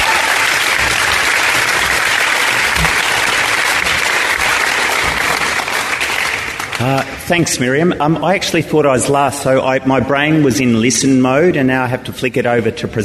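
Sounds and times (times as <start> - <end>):
audience applause: 0.0 - 7.2
speech: 6.8 - 13.0.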